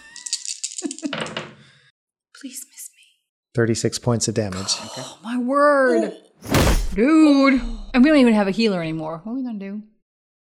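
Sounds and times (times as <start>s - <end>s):
dice rattling: 0.0s - 1.4s
speech: 3.6s - 9.9s.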